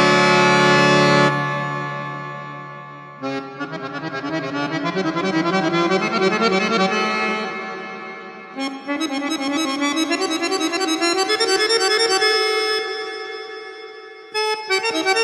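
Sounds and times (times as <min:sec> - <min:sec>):
accordion duet playing a toccata: 0:00.0 - 0:13.6, 0:14.4 - 0:15.2.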